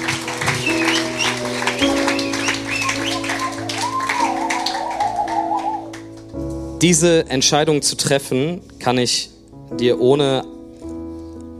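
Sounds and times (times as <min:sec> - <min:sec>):
audience applause: 0:00.0 - 0:06.3
speech: 0:06.8 - 0:10.5.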